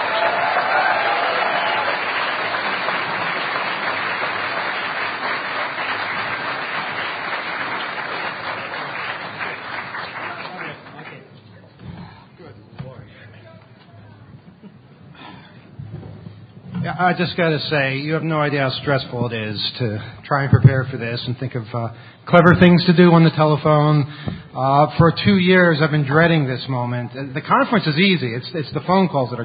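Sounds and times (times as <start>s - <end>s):
conference audience applause for the social engineering panel: 0.0s - 11.3s
speech: 17.0s - 29.4s.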